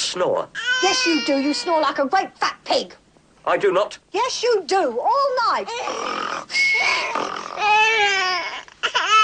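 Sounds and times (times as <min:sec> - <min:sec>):
speech: 0:00.1 - 0:07.4
dog whining and crying: 0:05.7 - 0:09.2.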